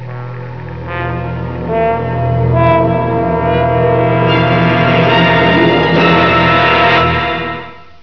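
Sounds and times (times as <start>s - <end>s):
suspense music: 0.0s - 8.0s.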